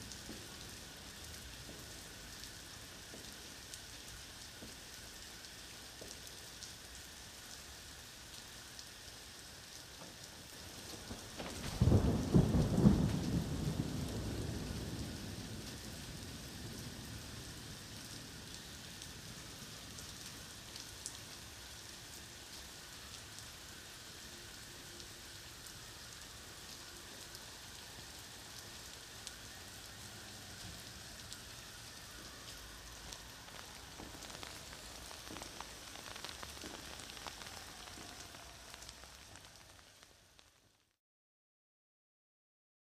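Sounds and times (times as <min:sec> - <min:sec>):
rain: 0:00.0 - 0:41.0
heavy thunder: 0:11.1 - 0:17.7.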